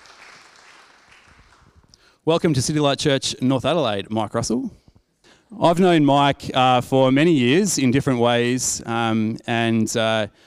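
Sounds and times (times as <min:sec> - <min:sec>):
crowd applauding: 0:00.0 - 0:01.9
speech: 0:02.2 - 0:04.8, 0:05.5 - 0:10.4.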